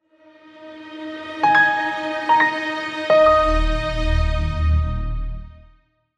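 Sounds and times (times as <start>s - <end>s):
piano tones: 1.4s - 5.2s.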